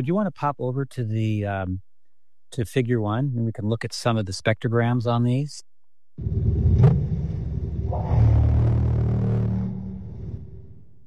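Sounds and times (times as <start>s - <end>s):
speech: 0.0s - 1.9s, 2.5s - 7.0s
low purring thrum call: 6.2s - 11.0s.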